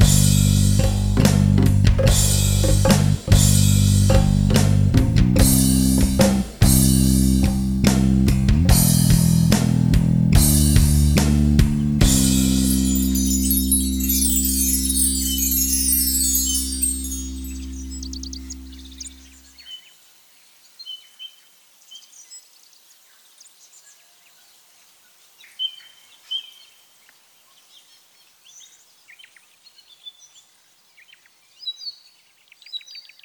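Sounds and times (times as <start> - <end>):
ambient bass guitar: 0.0 - 19.4.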